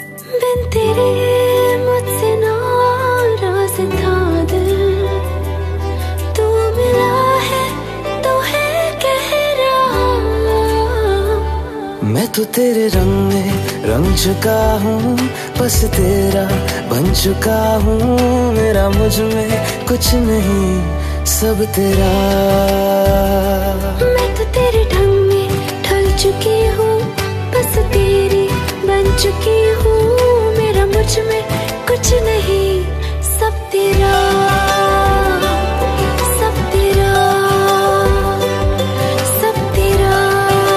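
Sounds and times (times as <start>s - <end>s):
romantic Bollywood ringtone: 0.0s - 40.7s.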